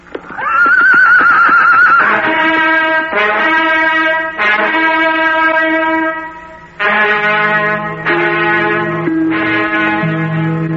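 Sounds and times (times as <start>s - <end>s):
horse whinnying during a galloping ride through a forest: 0.2s - 2.4s
brassy harmonic tones: 1.9s - 10.7s.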